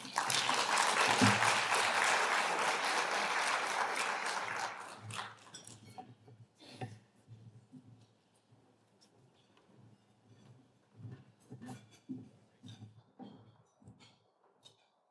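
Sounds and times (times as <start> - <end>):
audience applause welcoming two speakers onto a stage: 0.0 - 5.6.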